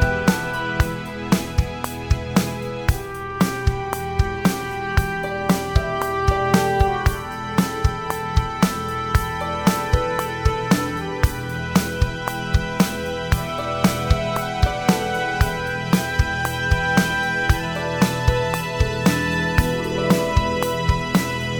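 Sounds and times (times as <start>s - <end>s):
drum: 0.0s - 21.5s
metronome: 0.0s - 21.5s.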